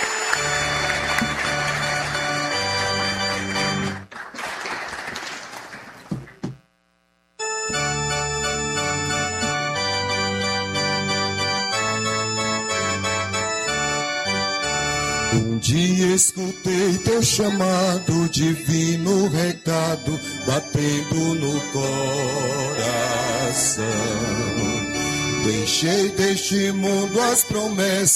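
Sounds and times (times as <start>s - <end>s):
steady music: 0.0s - 4.1s, 7.4s - 28.1s
audience applause for the priest: 0.0s - 6.5s
speech: 17.2s - 28.1s.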